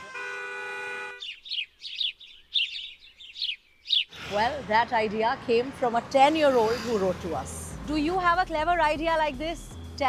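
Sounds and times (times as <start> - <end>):
bird chirping and tweeting: 1.2 - 4.2
speech: 4.3 - 10.0.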